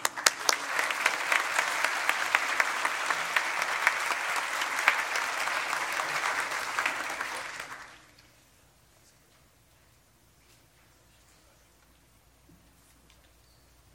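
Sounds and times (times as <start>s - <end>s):
seated crowd applause for graduating students: 0.0s - 8.2s.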